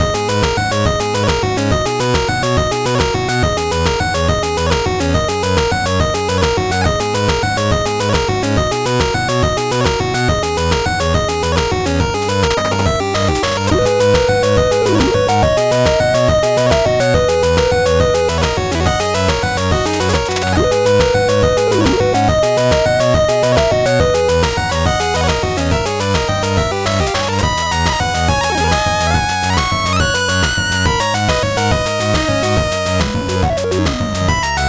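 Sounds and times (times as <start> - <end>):
8-bit background music: 0.0 - 34.6.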